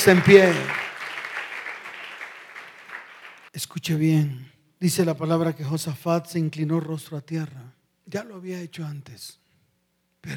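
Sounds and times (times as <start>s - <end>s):
speech: 0.0s - 0.8s, 3.6s - 9.4s
audience applauding: 0.0s - 3.5s.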